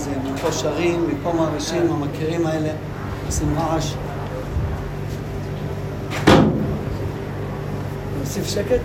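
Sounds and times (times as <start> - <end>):
low hum: 0.0 - 8.8
speech: 0.4 - 4.1, 8.3 - 8.8
window pushed shut with a thud: 6.1 - 6.8.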